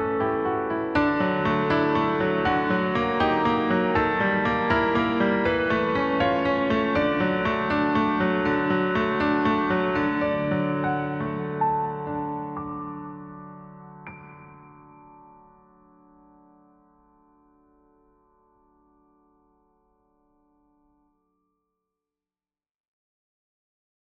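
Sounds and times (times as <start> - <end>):
piano music: 0.0 - 18.2.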